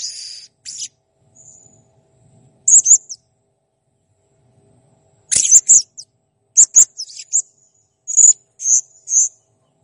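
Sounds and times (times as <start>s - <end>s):
blue-crowned hanging parrot chirping in full song: 0.0s - 1.6s, 2.7s - 3.2s, 5.3s - 6.0s, 6.6s - 7.4s.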